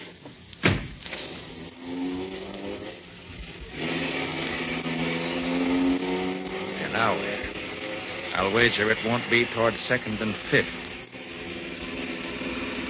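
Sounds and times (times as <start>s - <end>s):
sharp thump: 0.6s - 1.1s
car engine hum while driving off: 1.2s - 12.8s
speech: 8.4s - 10.9s.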